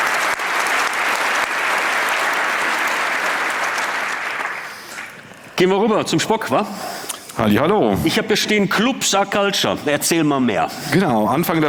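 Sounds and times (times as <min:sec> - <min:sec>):
crowd applauding: 0:00.0 - 0:05.5
speech: 0:05.6 - 0:11.6.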